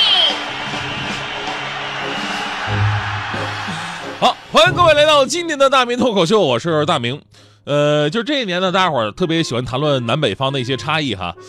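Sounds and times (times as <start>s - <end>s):
audience applause: 0.0s - 5.0s
speech: 4.2s - 11.4s.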